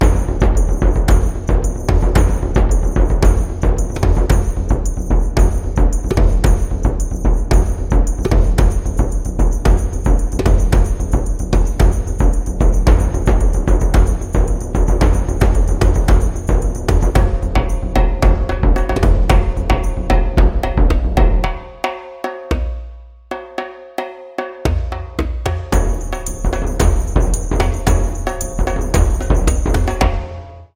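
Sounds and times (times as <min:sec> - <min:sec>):
Zulu tam-tam drum and shaker: 0:00.0 - 0:30.7.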